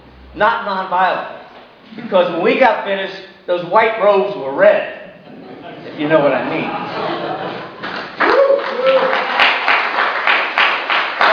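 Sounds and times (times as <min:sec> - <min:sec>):
speech: 0:00.4 - 0:05.0, 0:06.0 - 0:07.1
scattered voices: 0:05.1 - 0:07.7
laughter: 0:05.2 - 0:09.4
crowd applauding: 0:07.5 - 0:11.3
cheer: 0:08.2 - 0:10.2.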